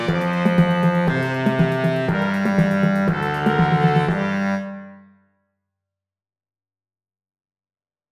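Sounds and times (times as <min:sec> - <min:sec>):
samba tuba: 0:00.0 - 0:04.8.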